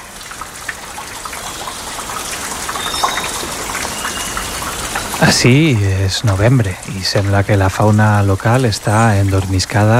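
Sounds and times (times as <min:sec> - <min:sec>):
condensed water drops and leaves falling from trees: 0:00.0 - 0:09.9
speech: 0:05.2 - 0:09.9.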